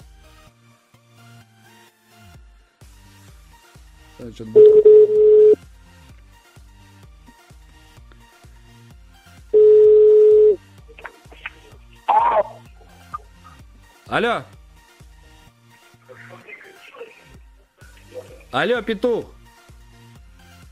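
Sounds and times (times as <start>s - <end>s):
speech: 4.2s - 4.9s, 14.1s - 14.6s, 18.5s - 19.4s
long steady telephone buzzing tones: 4.6s - 5.6s, 9.6s - 10.6s.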